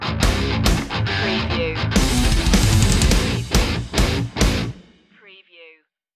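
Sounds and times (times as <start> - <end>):
game music stinger: 0.2 - 4.7.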